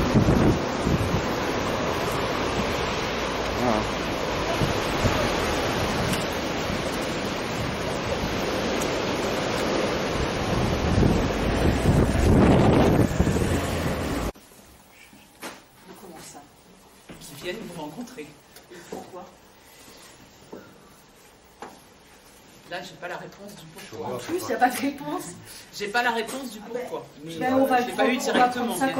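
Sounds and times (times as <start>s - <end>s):
rain outdoors: 0.0s - 28.9s
wind outdoors: 0.0s - 28.9s
speech: 0.1s - 1.1s, 3.7s - 4.1s, 23.0s - 28.9s.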